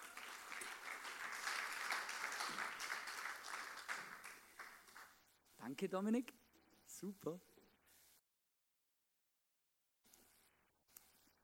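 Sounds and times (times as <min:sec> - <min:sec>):
audience applause: 0:00.0 - 0:05.2
speech: 0:05.6 - 0:06.4, 0:07.0 - 0:07.5.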